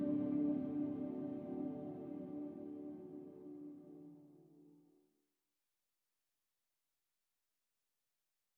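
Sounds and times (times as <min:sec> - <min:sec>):
synth pad in D: 0:00.0 - 0:04.7.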